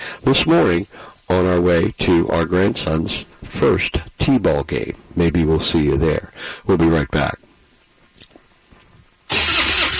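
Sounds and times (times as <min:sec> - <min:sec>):
speech: 0:00.2 - 0:07.4
truck engine cranking on a dead battery and failing to start: 0:09.3 - 0:09.9.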